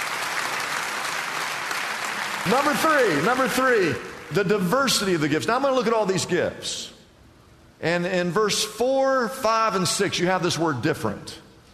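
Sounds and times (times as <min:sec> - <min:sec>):
audience clapping: 0:00.0 - 0:04.8
speech: 0:02.4 - 0:07.0, 0:07.8 - 0:11.4.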